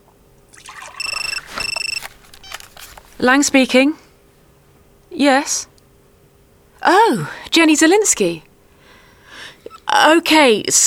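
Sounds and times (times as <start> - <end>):
water pouring into a cup while making tea: 0.5 - 1.8
high warbling electronic ring: 0.8 - 2.7
speech: 3.2 - 4.0, 5.2 - 5.7, 6.8 - 8.5, 10.0 - 10.8.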